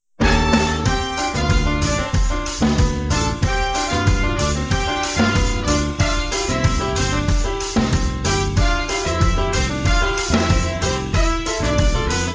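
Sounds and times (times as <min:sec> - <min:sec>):
jazz music: 0:00.2 - 0:12.3.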